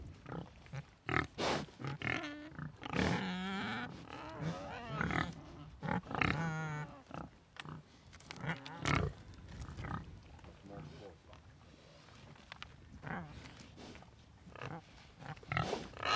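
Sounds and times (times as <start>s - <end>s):
pigs grunting: 1.1s - 9.2s, 14.6s - 16.1s.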